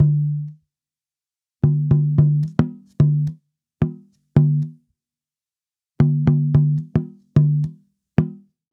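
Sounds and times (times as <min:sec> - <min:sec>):
African tambora drum: 0:00.0 - 0:00.5, 0:01.6 - 0:04.8, 0:06.0 - 0:08.5.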